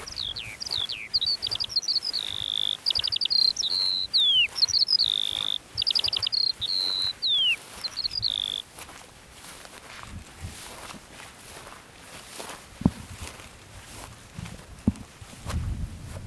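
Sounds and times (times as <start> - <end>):
lark song: 0.0 - 9.6
soft taps: 12.4 - 13.4, 14.5 - 15.1.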